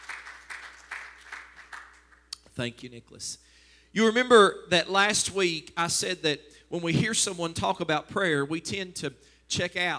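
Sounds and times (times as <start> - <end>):
audience clapping hands in praise: 0.0 - 2.3
speech: 2.6 - 9.9.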